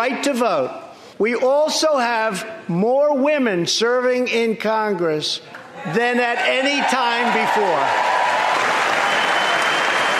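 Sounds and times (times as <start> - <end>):
speech: 0.0 - 8.2
applause in Congress chamber: 6.5 - 10.1.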